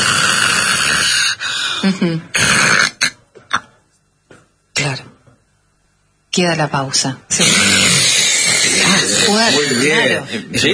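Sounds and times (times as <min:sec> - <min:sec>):
person imitating snoring with breathing pause: 0:00.0 - 0:01.4, 0:02.2 - 0:03.2, 0:07.3 - 0:10.0
speech: 0:01.8 - 0:02.4, 0:06.4 - 0:08.3, 0:08.9 - 0:10.7.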